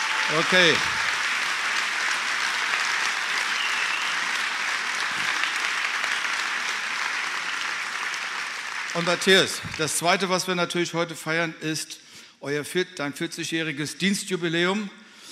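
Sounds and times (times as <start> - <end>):
audience applause: 0.0 - 10.3
speech: 0.3 - 1.0, 9.0 - 15.0.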